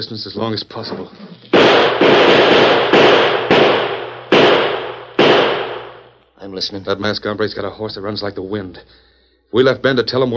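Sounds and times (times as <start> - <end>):
speech: 0.0 - 1.3, 6.5 - 10.3
gunshots fired from a window: 1.0 - 6.2.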